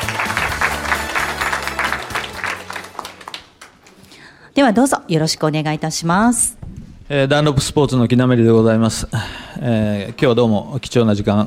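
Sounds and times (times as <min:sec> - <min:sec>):
audience applause: 0:00.0 - 0:04.0
speech: 0:04.6 - 0:11.4.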